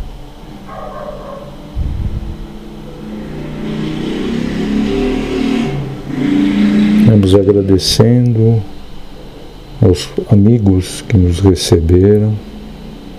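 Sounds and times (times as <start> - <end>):
vehicle engine rumble approaching: 0.6 - 9.6
speech: 7.3 - 8.7, 9.8 - 12.5.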